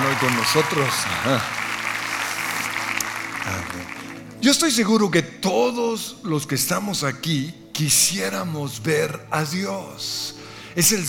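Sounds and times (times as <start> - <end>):
audience applause: 0.0 - 4.4
speech: 0.2 - 1.6, 3.5 - 11.0.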